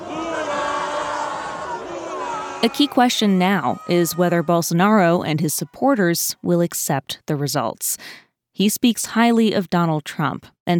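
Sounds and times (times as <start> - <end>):
large crowd cheering and shouting in the street: 0.0 - 5.7
speech: 2.6 - 10.7.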